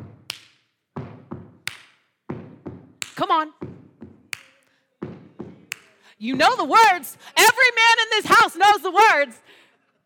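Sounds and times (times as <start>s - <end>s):
stomping feet: 0.0s - 4.4s, 5.0s - 7.0s
speech: 3.2s - 3.6s, 6.2s - 9.6s.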